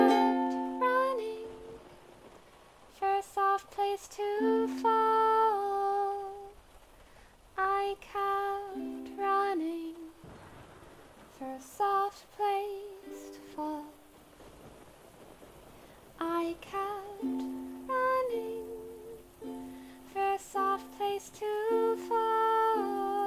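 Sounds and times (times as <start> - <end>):
ukulele jamming: 0.0 - 2.0, 16.8 - 23.2
rain: 0.0 - 23.2
thunder: 10.2 - 11.6, 14.2 - 17.1.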